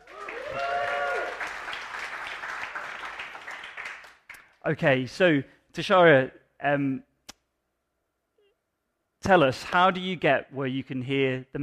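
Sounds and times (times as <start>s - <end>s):
audience applause: 0.0s - 4.4s
speech: 4.6s - 7.1s, 9.3s - 11.6s.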